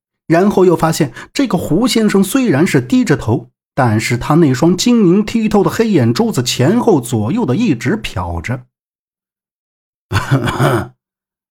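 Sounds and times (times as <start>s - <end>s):
speech: 0.3s - 8.7s, 10.1s - 11.0s
throat clearing: 10.1s - 11.0s.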